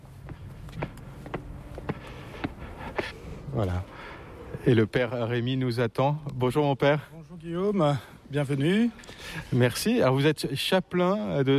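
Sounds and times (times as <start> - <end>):
footsteps climbing the steps of the basilica of the Sainte Thérèse de l'Enfant Jésus sanctuary: 0.0 - 4.2
low steady hum: 0.0 - 11.5
speech: 3.6 - 4.0, 4.6 - 11.5.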